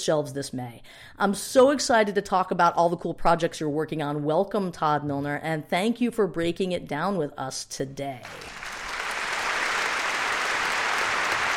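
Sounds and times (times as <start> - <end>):
speech: 0.0 - 8.7
studio audience applause: 8.2 - 11.5.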